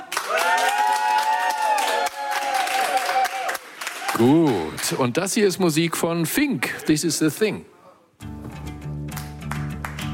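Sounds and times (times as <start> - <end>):
closing applause from studio audience: 0.0 - 5.2, 9.1 - 10.1
speech: 4.2 - 7.8.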